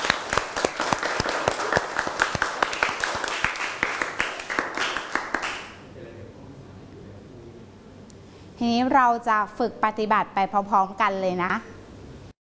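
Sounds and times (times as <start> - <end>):
audience applause: 0.0 - 5.8
speech: 8.6 - 11.7.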